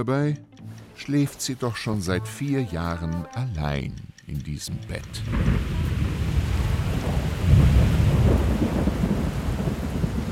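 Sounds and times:
speech: 0:00.0 - 0:06.0
rain in a thunderstorm: 0:05.2 - 0:10.3
thunder in a thunderstorm: 0:05.3 - 0:10.3.

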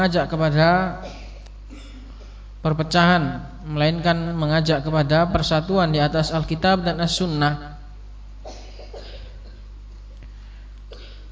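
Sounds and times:
speech: 0:00.0 - 0:01.9, 0:02.6 - 0:07.7
steady low electrical hum: 0:00.0 - 0:11.3
audience member coughing during a lecture: 0:01.0 - 0:02.4, 0:08.4 - 0:09.7, 0:10.9 - 0:11.3.

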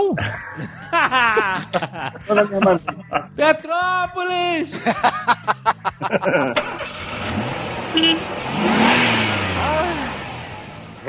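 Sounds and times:
laughter: 0:00.0 - 0:06.9
speech: 0:00.0 - 0:08.8
steady rumble of road noise: 0:01.4 - 0:11.0
car engine sputtering, catching and revving as the car accelerates away: 0:04.9 - 0:11.0.

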